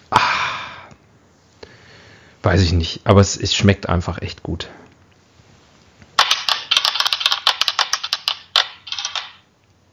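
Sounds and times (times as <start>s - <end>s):
speech: 2.4s - 4.8s
dice clattering and tumbling across a hard surface: 6.2s - 9.5s.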